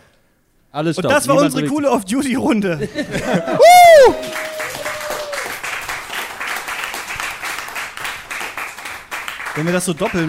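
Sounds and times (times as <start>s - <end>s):
speech: 0.7s - 4.5s, 9.6s - 10.2s
laughter: 2.7s - 5.0s
downloaded applause track: 3.7s - 10.2s.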